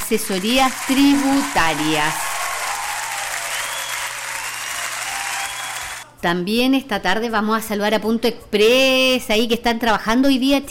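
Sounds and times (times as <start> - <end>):
crowd applause: 0.0 - 6.0
speech: 0.1 - 2.3, 6.2 - 10.6.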